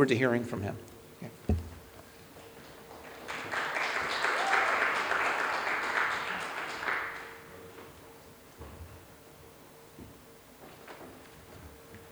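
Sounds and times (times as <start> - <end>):
speech: 0.0 - 1.3
church congregation applauding to welcome a speaker: 2.4 - 8.2.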